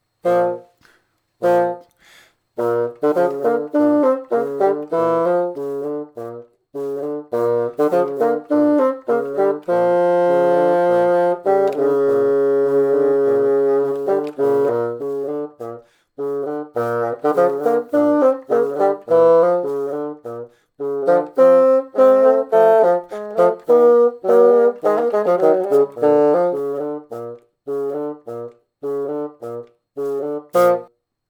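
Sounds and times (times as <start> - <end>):
music without bassoon: 0.0 - 31.2.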